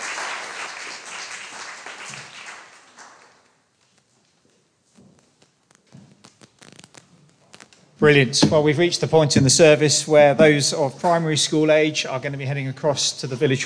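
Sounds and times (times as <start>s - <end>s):
audience applause: 0.0s - 3.4s
speech: 8.0s - 13.6s.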